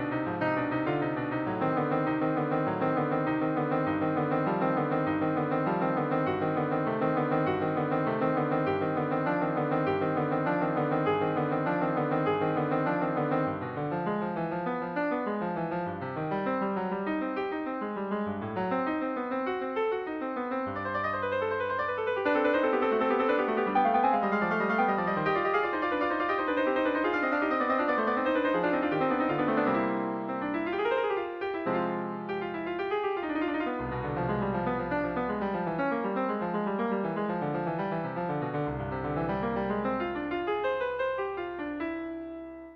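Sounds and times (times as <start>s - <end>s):
piano prelude in C minor: 0.0s - 42.7s.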